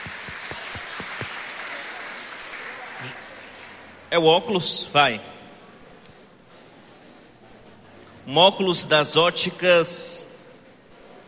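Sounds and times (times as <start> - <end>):
audience applause: 0.0 - 3.9
speech: 4.1 - 5.3, 8.3 - 10.3.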